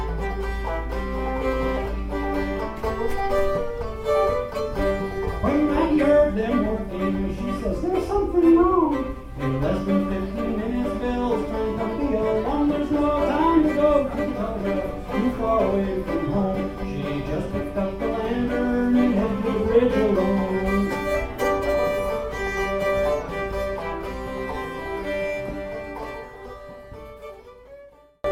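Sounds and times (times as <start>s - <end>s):
fiddle: 0.0s - 28.3s
guitar: 0.0s - 28.3s
person singing: 5.4s - 21.4s.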